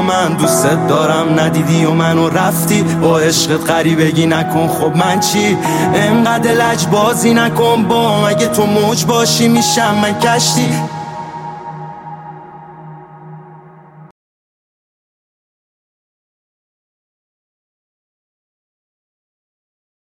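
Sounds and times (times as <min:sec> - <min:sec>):
piano music: 0:00.0 - 0:14.1.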